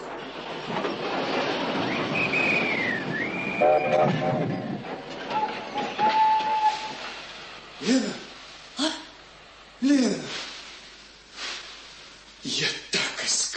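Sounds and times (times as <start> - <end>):
armoured train rumbling on rails stopping at a railway station: 0.0 - 13.5
armoured train whistle: 2.2 - 4.6, 5.3 - 7.0
speech: 3.8 - 4.7, 7.8 - 8.2.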